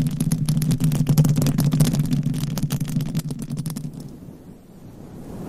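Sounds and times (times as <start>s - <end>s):
nails scratching across a covered microphone: 0.0s - 4.2s
rubbing: 0.0s - 4.2s.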